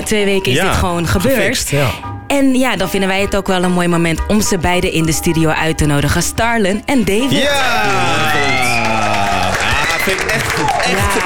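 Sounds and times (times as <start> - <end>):
speech: 0.1 - 9.1, 10.0 - 11.2
studio applause and cheering: 7.3 - 11.2.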